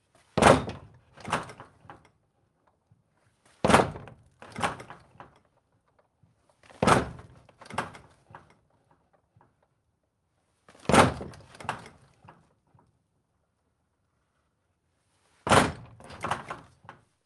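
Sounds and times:
wood door rattling from kicking, interior: 0.4s - 2.0s, 3.6s - 5.4s, 6.7s - 8.5s, 10.8s - 12.0s, 15.5s - 16.8s.

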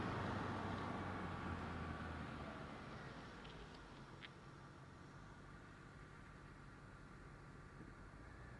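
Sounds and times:
Ford LTD car passing by: 0.0s - 3.9s
Ford LTD car stopping and reversing: 0.0s - 8.5s.

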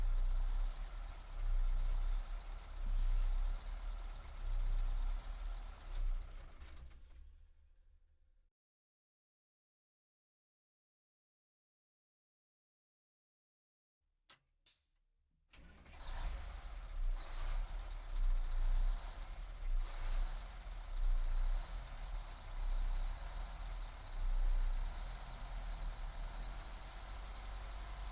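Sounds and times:
Peterbilt 359 truck engine at medium drive recorded onboard: 0.0s - 7.5s, 15.6s - 28.0s.

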